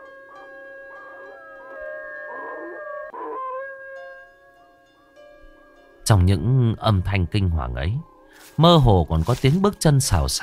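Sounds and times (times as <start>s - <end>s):
neighbour's dog barking and howling: 0.0s - 4.3s
speech: 6.1s - 10.4s.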